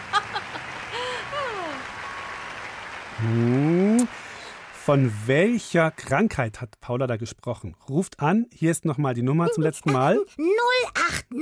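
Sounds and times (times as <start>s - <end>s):
laughter: 0.0s - 1.9s, 9.5s - 10.2s
audience applause: 0.0s - 6.5s
speech: 3.2s - 3.6s, 4.9s - 11.4s.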